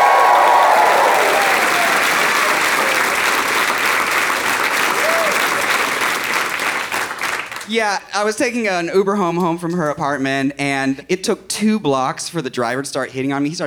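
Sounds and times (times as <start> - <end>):
audience applause: 0.0 - 7.7
speech: 7.7 - 13.6.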